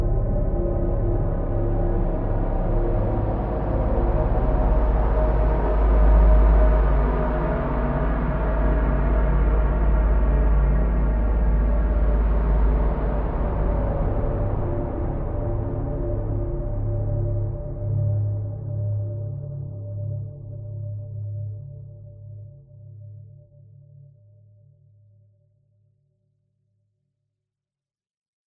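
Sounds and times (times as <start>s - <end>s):
dark sinister heavy depressing horror atmosphere: 0.0s - 20.0s.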